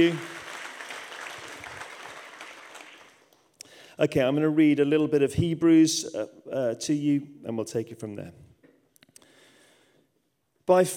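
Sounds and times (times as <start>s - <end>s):
speech: 0.0s - 0.3s, 4.0s - 8.4s, 10.7s - 10.9s
audience applause: 0.0s - 3.3s.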